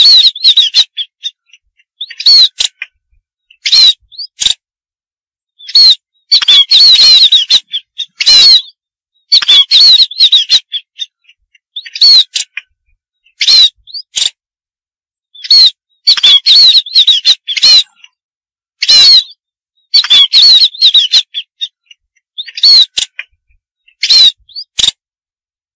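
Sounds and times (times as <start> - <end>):
munia harsh buzzy calls and thin wavering whistles: 0.0 - 4.5, 5.6 - 14.3, 15.3 - 18.2, 18.8 - 25.0.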